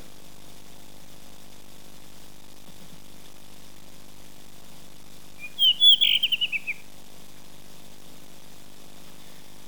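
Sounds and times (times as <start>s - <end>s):
blue rock thrush in a mountain ecosystem: 5.4s - 6.8s.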